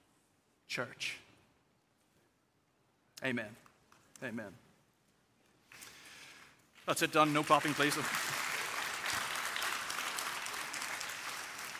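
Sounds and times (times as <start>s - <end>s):
speech: 0.7s - 1.2s, 3.2s - 4.6s, 6.9s - 8.2s
audience applause: 7.0s - 11.7s.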